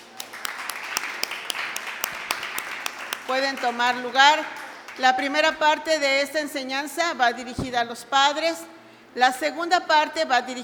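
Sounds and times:
audience applause for the parents: 0.0 - 3.7
speech: 3.3 - 10.6.

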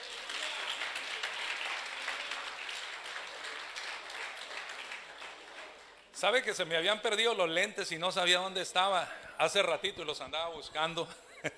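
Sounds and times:
audience clapping: 0.0 - 6.6
speech: 6.2 - 11.5.

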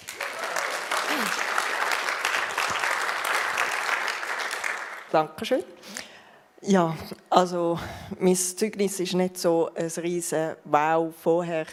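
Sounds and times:
audience applause: 0.0 - 5.1
speech: 5.1 - 6.0, 6.6 - 11.7.

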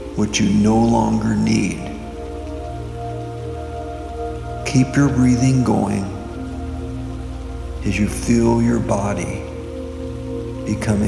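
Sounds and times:
rain falling: 0.0 - 11.0
speech: 0.2 - 1.9, 4.7 - 6.2, 7.8 - 9.5, 10.7 - 11.0.

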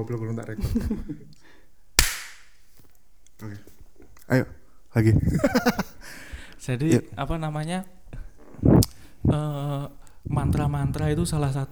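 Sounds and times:
speech: 0.0 - 1.6, 3.4 - 3.7, 4.3 - 8.0, 8.6 - 11.7
laughter: 0.6 - 1.3, 5.1 - 6.0
single hand clap: 2.0 - 2.6.

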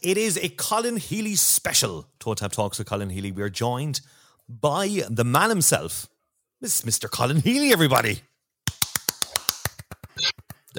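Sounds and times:
speech: 0.0 - 8.3
one person clapping: 8.6 - 10.7.

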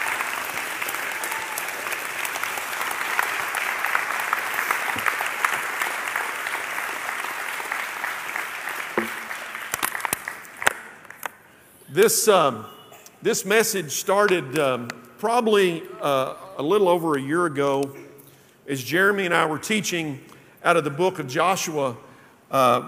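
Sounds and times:
audience applause: 0.0 - 10.7
speech: 12.0 - 18.0, 18.7 - 22.8.

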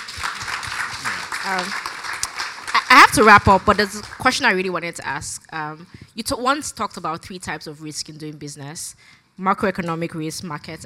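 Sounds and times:
audience applauding a guest at a business talk: 0.0 - 4.3
speech: 1.5 - 1.9, 2.9 - 10.8.

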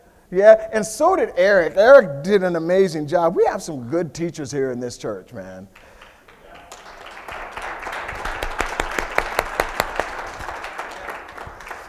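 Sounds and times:
speech: 0.3 - 5.9
light polite applause from a group: 5.7 - 11.8.

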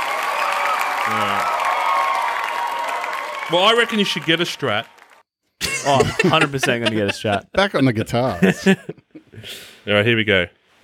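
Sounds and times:
studio audience clapping: 0.0 - 5.2, 5.9 - 7.4
studio audience cheering: 0.0 - 7.4
speech: 1.1 - 1.5, 3.5 - 5.0, 5.8 - 10.8
laughter: 5.6 - 9.3.

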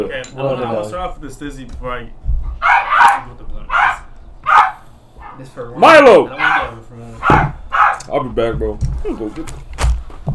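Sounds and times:
speech: 0.0 - 3.9, 5.4 - 10.3
dog barking while trying to get at another dog: 2.6 - 5.5, 6.3 - 8.0.

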